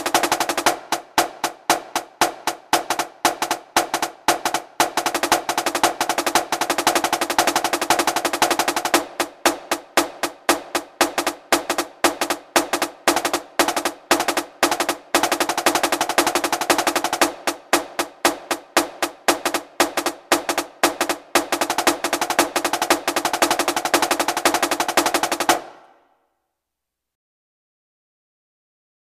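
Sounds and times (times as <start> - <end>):
drum paradiddle-diddle: 0.0 - 25.9.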